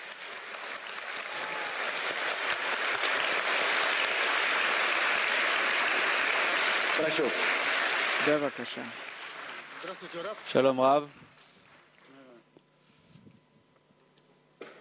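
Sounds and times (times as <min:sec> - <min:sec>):
audience applause: 0:00.0 - 0:11.2
speech: 0:07.0 - 0:07.6, 0:08.2 - 0:09.0, 0:09.8 - 0:11.3.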